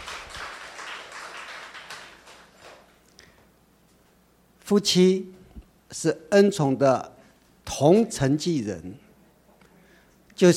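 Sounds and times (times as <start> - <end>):
audience applauding: 0.0 - 3.0
speech: 4.7 - 7.1, 7.7 - 9.0.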